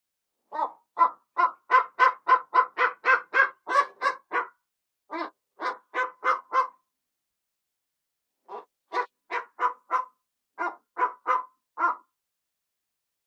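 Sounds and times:
bateleur barking chirps: 0.5 - 6.8, 8.5 - 12.1.

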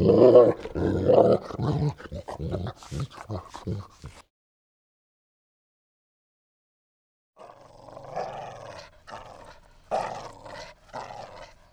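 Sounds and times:
dog growling: 0.0 - 4.2, 7.4 - 11.7.

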